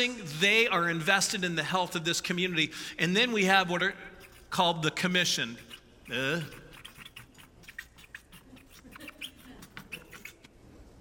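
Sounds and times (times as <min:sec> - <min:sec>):
speech: 0:00.0 - 0:06.6
marker squeaking on a board: 0:04.1 - 0:10.6.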